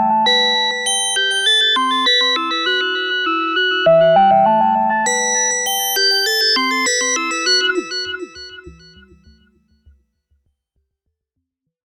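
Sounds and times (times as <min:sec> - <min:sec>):
Malekko Manther synthesizer resonance play: 0:00.0 - 0:09.5.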